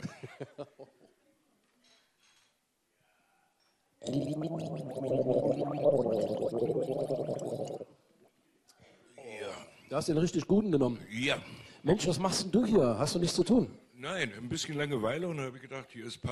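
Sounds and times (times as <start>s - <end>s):
person gargling with egg liqueur: 4.0s - 7.9s
speech: 4.1s - 7.3s, 10.0s - 16.2s.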